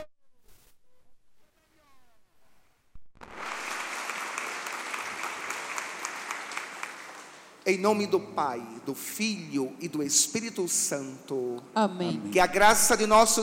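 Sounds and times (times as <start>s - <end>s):
audience applause: 3.2s - 7.6s
speech: 7.7s - 13.4s.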